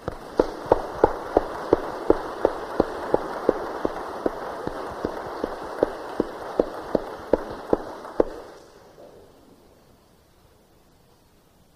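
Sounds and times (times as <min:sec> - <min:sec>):
audience clapping: 0:00.0 - 0:08.6.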